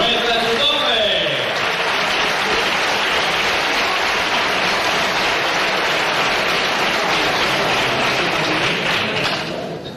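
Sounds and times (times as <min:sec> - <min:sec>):
applause: 0:00.0 - 0:09.7.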